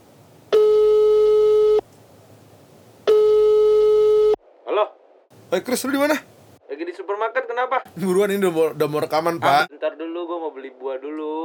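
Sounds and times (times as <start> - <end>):
telephone dialing tone: 0.5 - 1.8, 3.1 - 4.4
speech: 5.5 - 6.3, 7.0 - 11.4.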